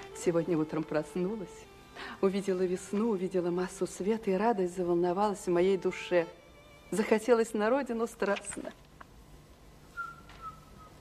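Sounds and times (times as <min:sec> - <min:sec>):
speech: 0:00.2 - 0:08.8
woman whistling: 0:10.0 - 0:10.9.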